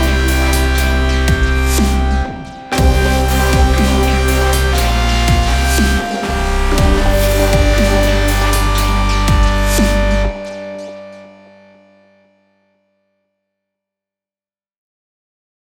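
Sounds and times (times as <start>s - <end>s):
root bass: 0.0s - 11.7s
lead melody: 0.0s - 12.2s.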